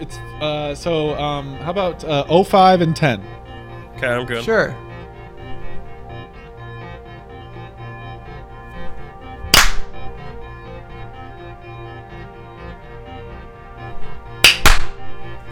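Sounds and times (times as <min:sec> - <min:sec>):
speech: 0:00.0 - 0:03.4, 0:04.0 - 0:04.8
hand claps: 0:09.5 - 0:10.0, 0:14.4 - 0:15.0.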